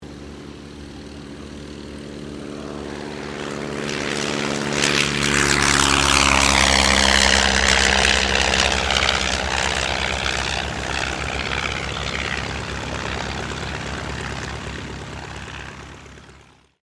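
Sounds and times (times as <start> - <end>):
Auster III aircraft taking off: 0.0 - 16.8.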